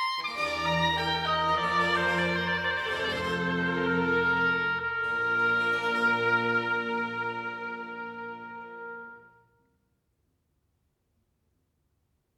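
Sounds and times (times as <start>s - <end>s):
oboe concerto fugue: 0.0s - 9.6s.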